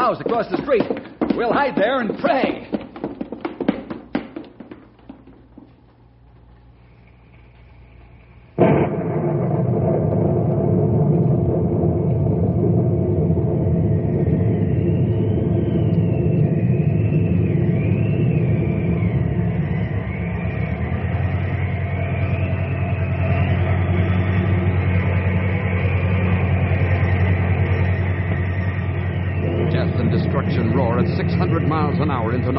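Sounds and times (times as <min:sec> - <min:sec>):
speech: 0:00.1 - 0:02.8
tornado roaring past: 0:08.6 - 0:32.5.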